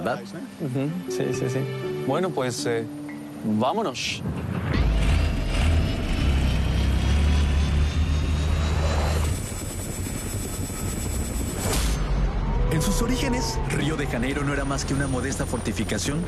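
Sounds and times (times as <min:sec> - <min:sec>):
speech: 0:00.0 - 0:04.8, 0:12.8 - 0:16.2
helicopter in flight: 0:04.6 - 0:16.2.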